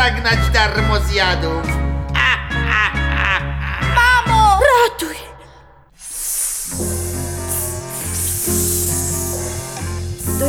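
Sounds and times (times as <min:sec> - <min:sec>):
speech: 0:00.0 - 0:01.8, 0:05.0 - 0:05.3
laughter: 0:02.1 - 0:04.7
snakes hissing: 0:05.9 - 0:10.4.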